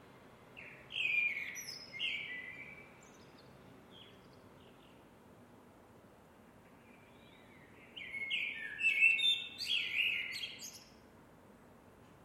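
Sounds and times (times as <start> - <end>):
Eurasian blackbird singing: 0.6 - 5.0, 6.9 - 11.0.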